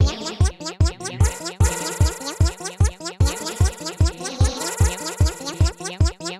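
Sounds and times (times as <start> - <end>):
clockwork machines: 1.2 - 6.0.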